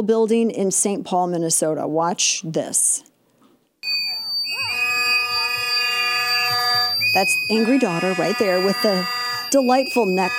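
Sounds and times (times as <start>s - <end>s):
speech: 0.0s - 3.1s, 7.1s - 10.3s
agitated people shouting and talking: 3.8s - 10.3s
shrill whistle blown at a protest: 3.8s - 10.3s.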